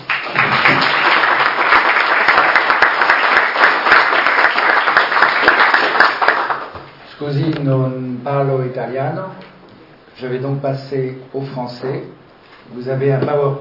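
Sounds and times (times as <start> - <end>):
audience applause: 0.0 - 6.8
speech: 7.2 - 9.5, 10.2 - 13.5.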